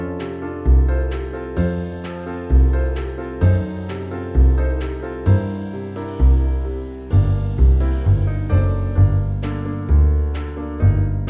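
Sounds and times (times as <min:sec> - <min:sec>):
backing music: 0:00.2 - 0:11.2.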